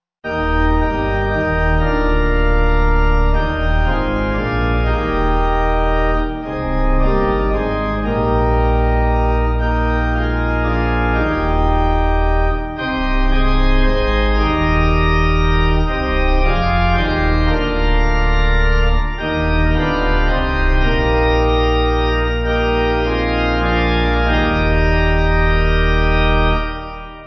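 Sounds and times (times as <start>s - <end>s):
church pipe organ backing music: 0.2s - 27.2s.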